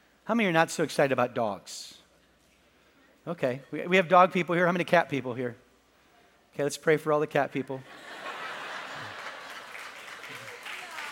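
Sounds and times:
speech: 0.3 - 2.0, 3.2 - 5.6, 6.6 - 8.1
laughter: 7.8 - 11.1
audience clapping: 8.5 - 11.1.

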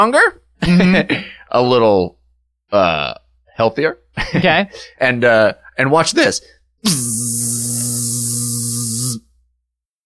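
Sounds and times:
speech: 0.0 - 9.3
voice imitating a buzzing bee: 6.8 - 9.3.

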